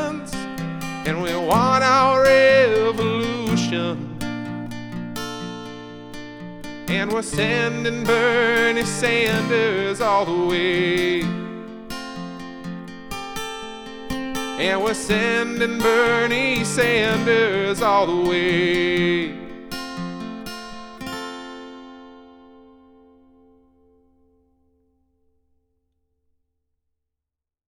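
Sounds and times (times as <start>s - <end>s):
chorus sing-along track: 0.0s - 12.2s, 14.1s - 20.1s.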